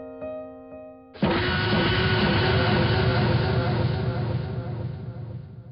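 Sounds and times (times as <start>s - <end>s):
analog laser synth: 1.2s - 5.7s.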